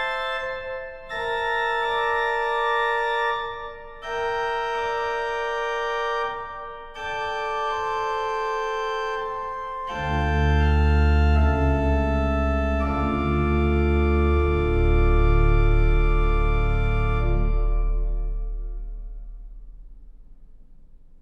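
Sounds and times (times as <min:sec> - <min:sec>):
computer-generated organ prelude with suspension appoggiatura: 0:00.0 - 0:19.3.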